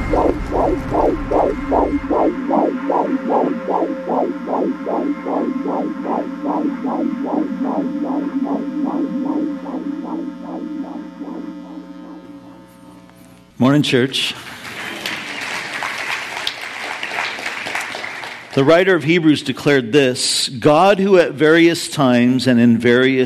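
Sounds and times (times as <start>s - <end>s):
deep rumble: 0.0s - 12.5s
heartbeat: 0.0s - 12.6s
low hum: 0.0s - 13.5s
speech: 13.8s - 14.4s, 18.6s - 23.2s.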